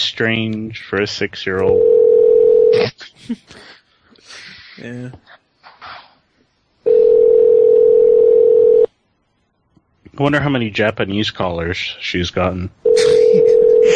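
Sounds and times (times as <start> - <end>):
speech: 0.1 - 2.0, 2.7 - 3.8, 4.8 - 5.4, 10.2 - 13.9
telephone dial tone: 1.7 - 2.7, 6.9 - 8.9, 13.4 - 13.9.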